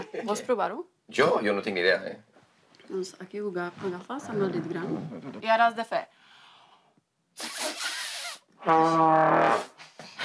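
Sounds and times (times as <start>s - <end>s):
speech: 0.1s - 2.3s, 2.9s - 6.2s, 8.6s - 10.2s
beginner blowing a trombone: 8.6s - 9.8s.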